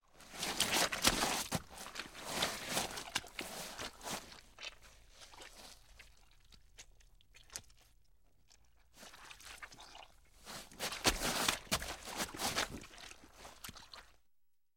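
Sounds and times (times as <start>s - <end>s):
person getting up from mud: 0.2s - 5.8s, 10.5s - 14.1s
body falling in mud: 0.4s - 4.0s, 10.6s - 13.9s.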